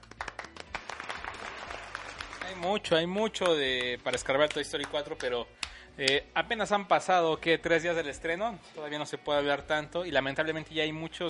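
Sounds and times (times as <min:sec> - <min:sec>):
applause: 0:00.0 - 0:05.8
speech: 0:02.5 - 0:11.2.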